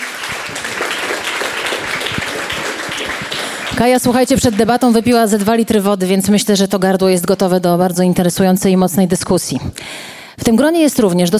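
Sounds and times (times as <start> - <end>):
audience applause: 0.0 - 4.8
speech: 3.8 - 11.3.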